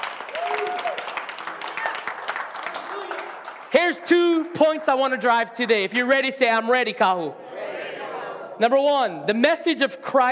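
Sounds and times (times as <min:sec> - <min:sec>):
audience clapping in praise: 0:00.0 - 0:04.5
speech: 0:03.8 - 0:07.4, 0:08.6 - 0:10.2.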